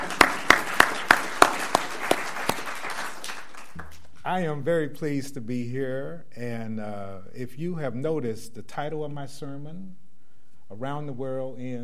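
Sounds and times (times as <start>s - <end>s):
hand claps: 0.0s - 4.2s
speech: 4.3s - 10.0s, 10.7s - 11.8s.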